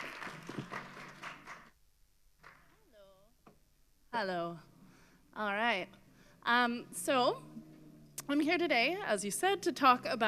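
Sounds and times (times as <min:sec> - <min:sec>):
audience applause: 0:00.0 - 0:01.8
speech: 0:04.2 - 0:04.7, 0:05.4 - 0:07.6, 0:08.3 - 0:10.2.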